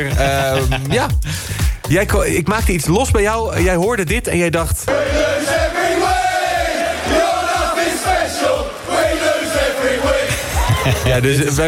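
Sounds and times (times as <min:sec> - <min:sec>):
laughter: 0:00.0 - 0:01.1, 0:09.9 - 0:11.6
speech: 0:00.0 - 0:05.5, 0:10.9 - 0:11.6
English football fans chanting a song: 0:04.9 - 0:10.8.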